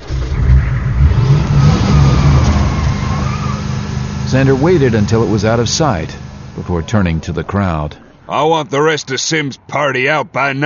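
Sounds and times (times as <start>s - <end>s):
vehicle engine revving and driving away: 0.0s - 8.0s
speech: 4.3s - 10.6s.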